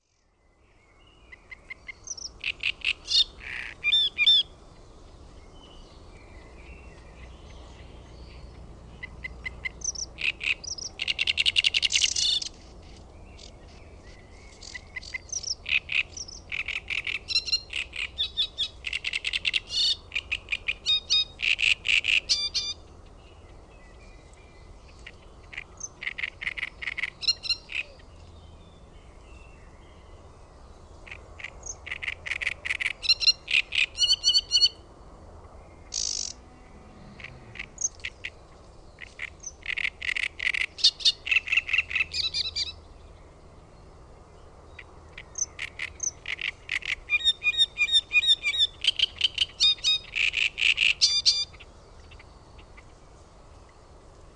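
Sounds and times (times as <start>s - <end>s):
great reed warbler calls: 1.3s - 4.5s, 6.4s - 23.3s, 24.8s - 28.1s, 31.0s - 34.8s, 35.8s - 36.4s, 37.2s - 42.9s, 44.7s - 52.9s.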